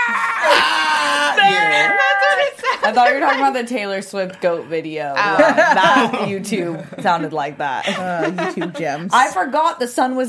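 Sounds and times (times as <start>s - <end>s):
man imitating the long wailing cry of a man from the TV show Intervention: 0.0s - 2.7s
laughter: 0.4s - 9.4s
speech: 2.8s - 10.2s.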